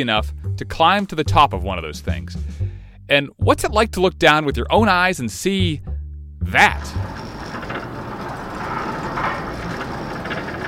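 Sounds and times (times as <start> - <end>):
speech: 0.0 - 7.2
creaky rumbling elevator hauled to the top of a very tall tower: 6.6 - 10.6
faint rattling: 6.6 - 10.6.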